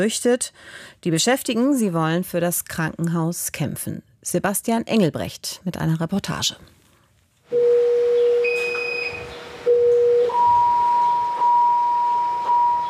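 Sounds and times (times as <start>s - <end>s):
speech: 0.0s - 6.8s
patient monitor alarms on an intensive care ward: 7.5s - 12.8s.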